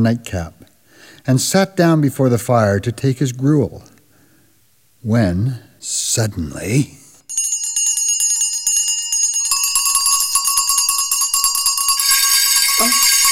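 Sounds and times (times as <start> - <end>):
speech: 0.0 - 0.6, 1.2 - 3.9, 5.0 - 7.0
many house bells ringing at once: 7.3 - 13.3.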